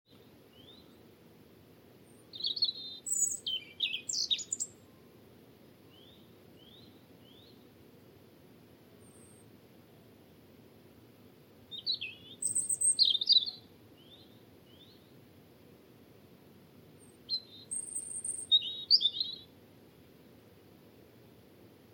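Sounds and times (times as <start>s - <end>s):
European robin singing a high descending warbled phrase: 2.3s - 4.9s, 11.7s - 15.0s, 17.3s - 19.4s.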